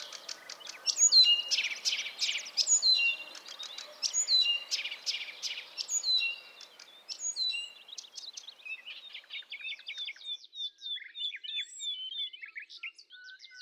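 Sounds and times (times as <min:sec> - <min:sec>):
sadovaya kamishovka: 0:00.0 - 0:09.4
nature sounds: 0:00.0 - 0:11.5.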